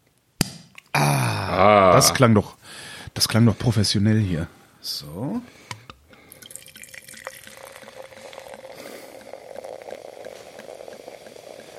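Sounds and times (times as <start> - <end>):
speech: 1.6 - 5.7
sparkling wine poured into a glass: 6.3 - 11.7.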